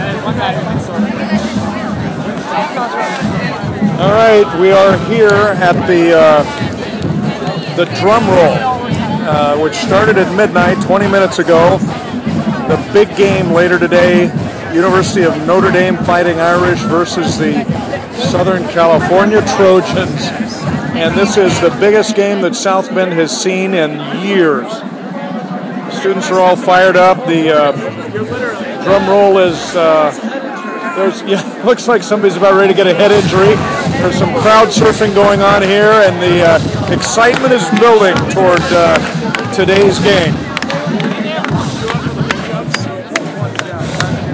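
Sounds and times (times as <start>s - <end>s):
drum roll at the University of Notre Dame: 0.0s - 44.3s.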